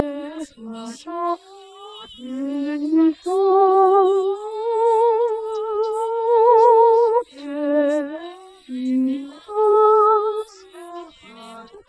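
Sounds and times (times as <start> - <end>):
person singing: 0.0 - 11.8.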